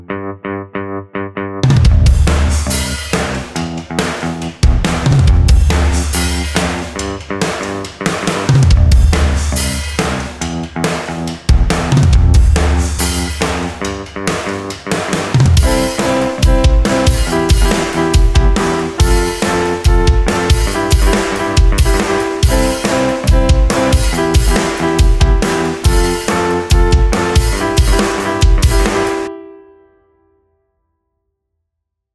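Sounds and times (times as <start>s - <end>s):
pop rock music: 1.7s - 29.3s.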